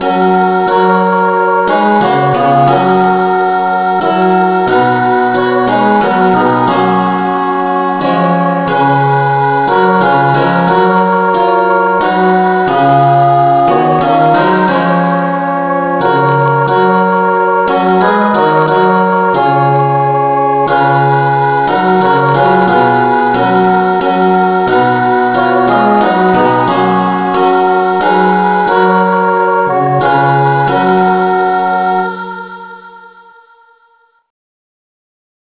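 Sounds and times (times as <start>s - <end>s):
instrumental music in F sharp: 0.0s - 33.7s.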